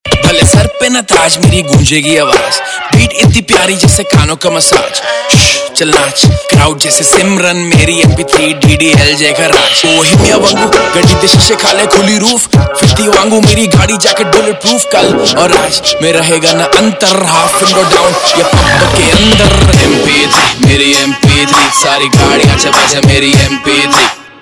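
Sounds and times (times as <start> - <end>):
Punjabi pop ringtone: 0.1 - 24.0.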